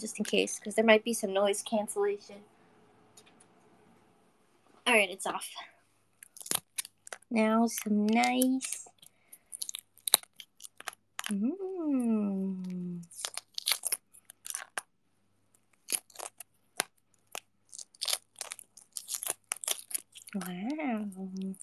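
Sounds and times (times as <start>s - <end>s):
speech: 0.0s - 2.5s, 4.8s - 5.7s, 7.3s - 8.9s, 11.3s - 13.4s, 20.4s - 21.6s
boiled eggshell being cracked and peeled: 6.2s - 11.7s, 12.5s - 21.6s.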